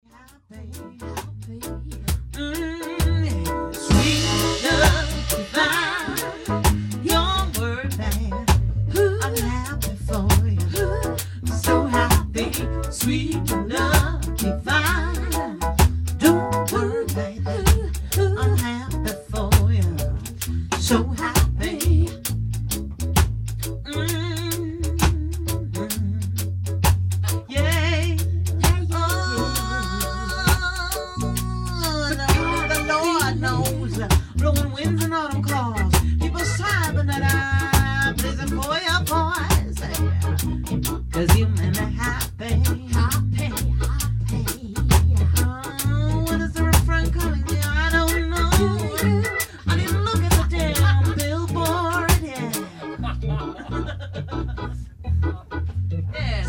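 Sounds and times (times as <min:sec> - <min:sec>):
reggae ballad: 0:00.0 - 0:56.4
laughter: 0:52.3 - 0:55.4.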